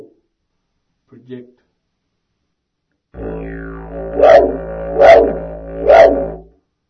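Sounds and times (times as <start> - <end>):
didgeridoo: 3.2 - 6.5.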